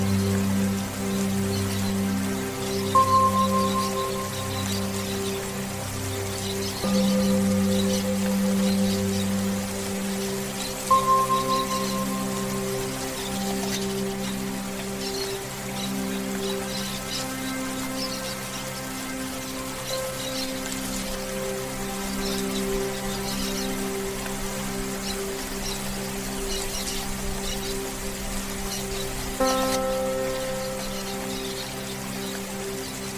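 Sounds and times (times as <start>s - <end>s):
steady rain patter: 0.0s - 33.1s.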